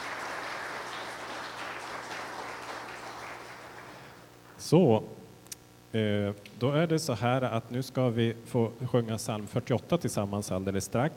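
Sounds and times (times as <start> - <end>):
audience applause: 0.0 - 4.2
speech: 4.6 - 5.2, 5.9 - 11.1.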